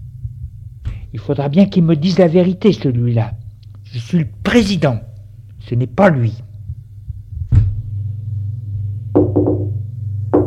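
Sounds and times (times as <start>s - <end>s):
low hum: 0.0s - 10.4s
speech: 1.1s - 6.5s
knocking on a door: 9.2s - 10.4s.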